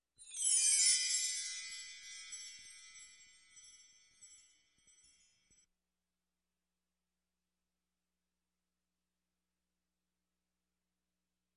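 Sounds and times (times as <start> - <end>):
chime: 0.1 - 5.7.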